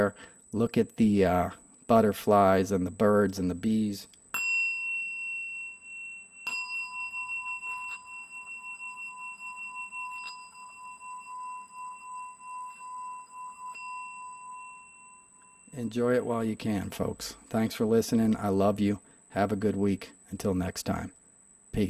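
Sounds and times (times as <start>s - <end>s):
speech: 0.0s - 4.2s, 15.8s - 21.2s
singing bowl struck and ringing: 4.3s - 16.3s.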